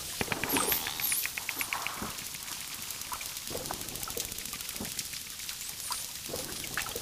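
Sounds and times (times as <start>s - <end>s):
dolphin click trains: 0.1s - 7.0s.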